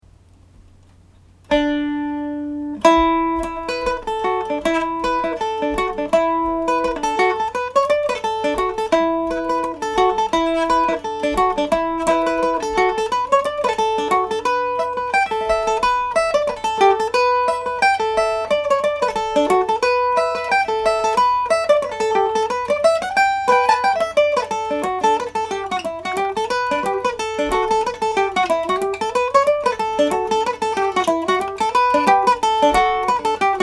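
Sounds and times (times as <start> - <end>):
Irish mandolin: 0.1 - 33.6.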